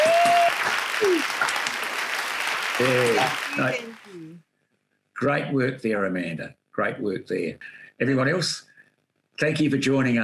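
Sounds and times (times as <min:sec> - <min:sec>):
round of applause: 0:00.0 - 0:04.1
speech: 0:02.8 - 0:04.5, 0:05.2 - 0:08.7, 0:09.4 - 0:10.2.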